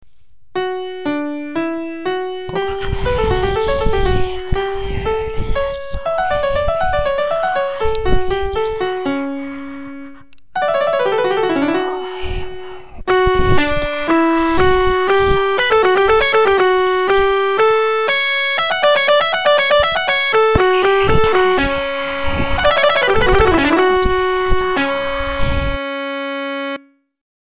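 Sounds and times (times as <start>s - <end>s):
piano: 0.5s - 26.8s.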